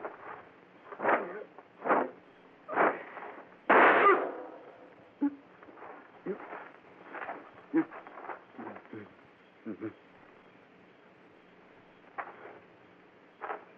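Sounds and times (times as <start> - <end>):
thumps: 0.0 - 8.9, 12.1 - 12.7, 13.4 - 13.7
gunshot: 1.0 - 5.2.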